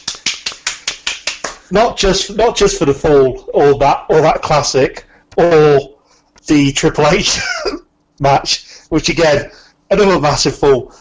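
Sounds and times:
one person clapping: 0.0s - 1.8s
speech: 1.7s - 5.9s, 6.5s - 10.9s.

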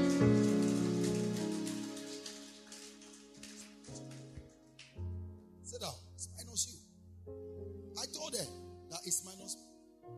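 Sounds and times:
audience clapping hands: 0.0s - 5.0s
speech: 6.6s - 10.1s.

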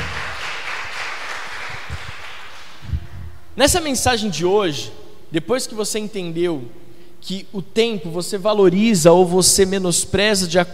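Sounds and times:
audience applauding: 0.0s - 2.9s
speech: 3.6s - 10.7s.

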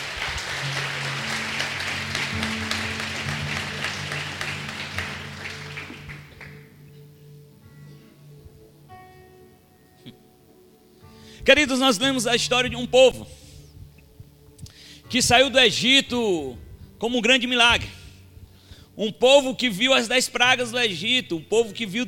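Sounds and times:
audience applause: 0.0s - 6.8s
speech: 11.5s - 13.4s, 15.1s - 17.9s, 19.0s - 22.0s.

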